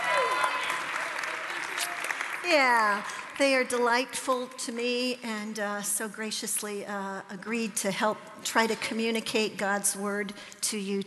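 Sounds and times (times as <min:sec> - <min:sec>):
audience applause welcoming a class: 0:00.0 - 0:03.4
speech: 0:02.5 - 0:11.0.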